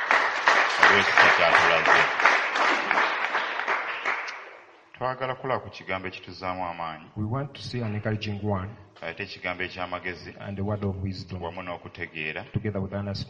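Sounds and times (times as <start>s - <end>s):
audience clapping: 0.0s - 4.7s
speech: 0.9s - 3.1s, 5.0s - 13.2s.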